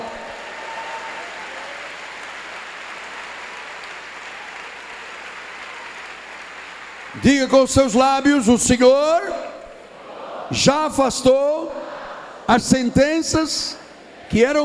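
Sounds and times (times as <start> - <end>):
audience applause: 0.0 - 7.2
speech: 7.1 - 9.5, 10.5 - 11.9, 12.5 - 14.6.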